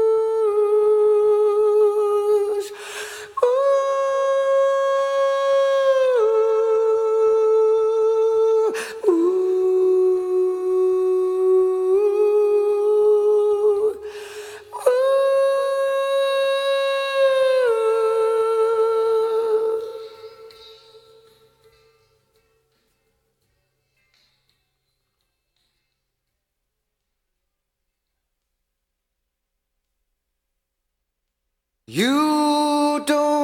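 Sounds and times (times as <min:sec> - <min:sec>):
person singing: 0:00.0 - 0:21.9, 0:31.9 - 0:33.4.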